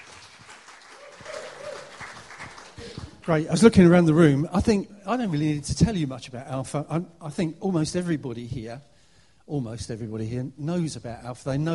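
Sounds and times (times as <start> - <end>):
crowd applauding: 0.0 - 3.2
speech: 3.3 - 8.9, 9.5 - 11.7.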